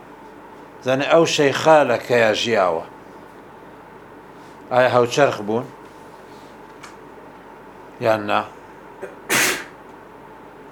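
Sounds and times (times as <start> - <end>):
speech: 0.8 - 2.9, 4.7 - 5.8, 8.0 - 9.2
sneeze during a religious lecture: 9.0 - 9.8.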